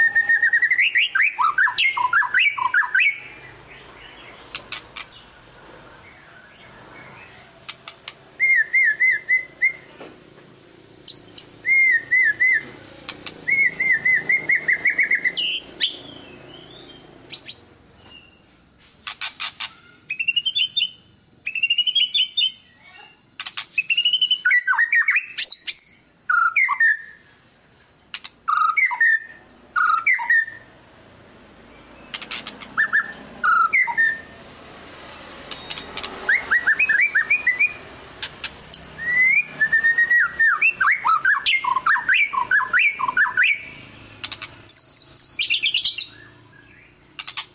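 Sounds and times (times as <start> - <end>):
white-rumped shama singing whistles and clicks: 0.0 - 3.3, 4.5 - 5.2, 7.6 - 9.9, 11.0 - 18.4, 19.0 - 22.6, 23.4 - 27.2, 28.1 - 30.6, 32.0 - 34.3, 35.4 - 47.5.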